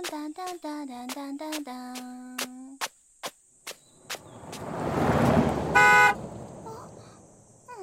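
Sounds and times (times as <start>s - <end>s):
speech: 0.5s - 1.9s
car driving past: 3.8s - 7.7s
car horn toot: 5.1s - 7.0s.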